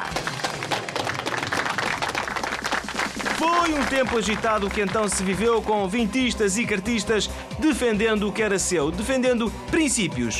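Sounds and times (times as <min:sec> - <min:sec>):
audience applause: 0:00.0 - 0:05.6
speech: 0:03.4 - 0:10.3.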